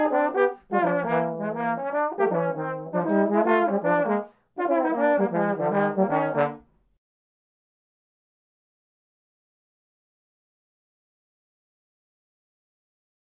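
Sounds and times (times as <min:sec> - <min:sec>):
jazz duo playing: 0:00.0 - 0:06.6.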